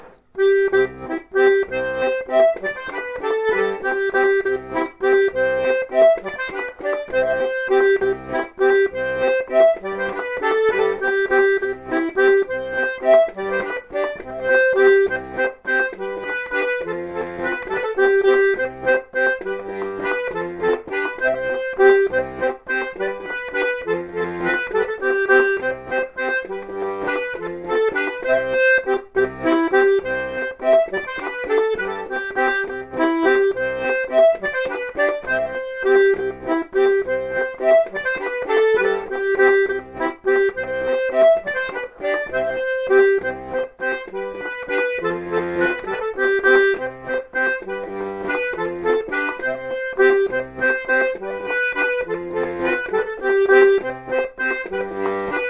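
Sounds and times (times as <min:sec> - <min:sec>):
bourrée droite dance tune on accordion: 0:00.0 - 0:55.4.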